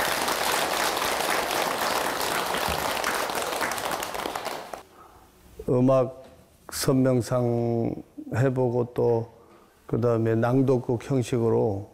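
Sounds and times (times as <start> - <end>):
audience applause: 0.0 - 4.8
speech: 5.7 - 11.9.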